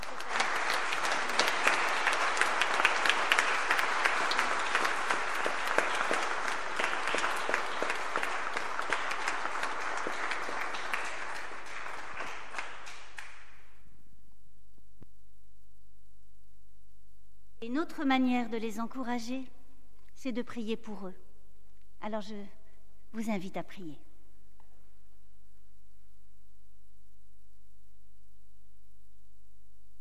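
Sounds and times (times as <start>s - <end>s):
crowd clapping: 0.0s - 13.9s
speech: 17.9s - 19.6s, 20.2s - 21.2s, 22.0s - 24.1s.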